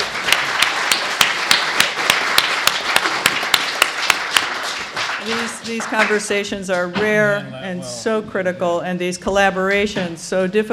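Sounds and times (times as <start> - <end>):
audience applause for panelists: 0.0 - 7.5
speech: 5.3 - 10.7.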